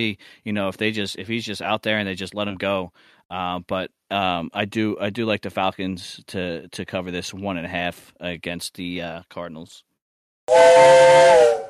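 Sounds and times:
speech: 0:00.0 - 0:09.9, 0:10.5 - 0:11.6
train whistle: 0:10.5 - 0:11.6.

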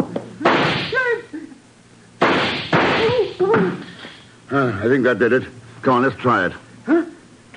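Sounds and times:
gunshot at a door lock: 0:00.4 - 0:01.0, 0:02.2 - 0:03.2
speech: 0:04.5 - 0:07.0.

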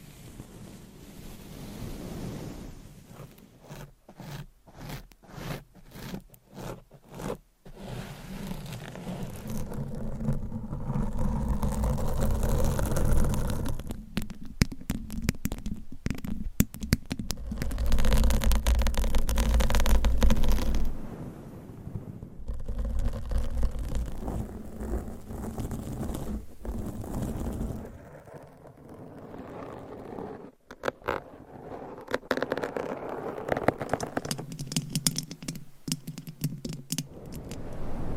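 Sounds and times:
dense rubbing and scraping: 0:01.1 - 0:21.1, 0:22.2 - 0:38.0
scratching and tapping: 0:08.5 - 0:21.0, 0:22.4 - 0:28.9, 0:29.7 - 0:37.7.

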